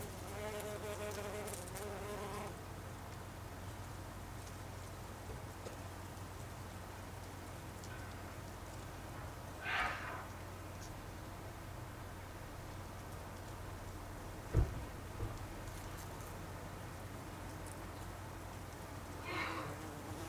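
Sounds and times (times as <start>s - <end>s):
bumblebee buzzing: 0.0s - 2.6s, 19.2s - 20.2s
constant low background hum: 0.0s - 20.2s.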